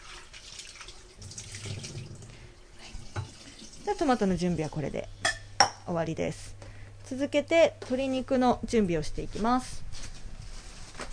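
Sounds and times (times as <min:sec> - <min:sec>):
tap water running into a sink: 0:00.0 - 0:04.8
speech: 0:03.9 - 0:05.2, 0:05.9 - 0:09.8.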